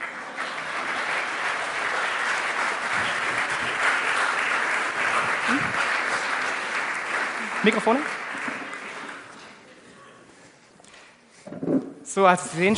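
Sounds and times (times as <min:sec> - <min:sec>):
polite applause: 0:00.0 - 0:09.8
speech: 0:07.6 - 0:08.2, 0:12.2 - 0:12.7.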